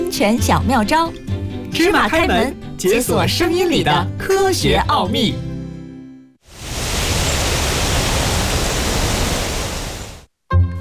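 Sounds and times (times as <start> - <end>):
speech: 0.1 - 5.5
cool autumn wind blowing: 6.5 - 10.3.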